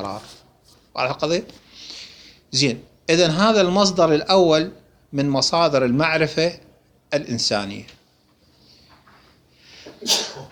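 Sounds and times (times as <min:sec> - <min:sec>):
speech: 0:00.0 - 0:00.4, 0:01.0 - 0:08.0, 0:10.0 - 0:10.5
person sneezing: 0:09.8 - 0:10.5.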